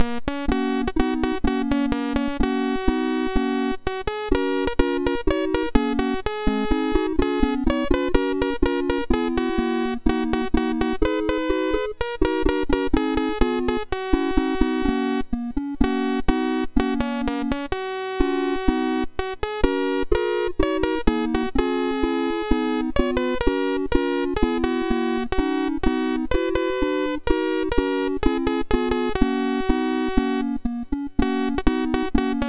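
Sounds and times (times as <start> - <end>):
MOS6581R4 SID chip music: 0.3 - 32.4.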